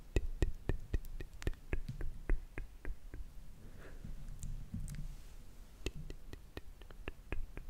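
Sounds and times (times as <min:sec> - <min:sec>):
slow wet mouth clicks and pops: 0:00.2 - 0:03.2, 0:05.9 - 0:07.6.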